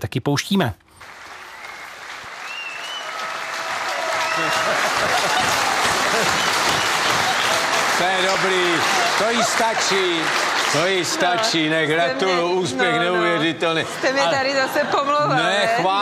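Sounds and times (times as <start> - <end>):
speech: 0.0 - 1.2, 4.4 - 7.0, 8.0 - 15.9
studio audience applause: 1.0 - 13.4
laughter: 4.1 - 15.9.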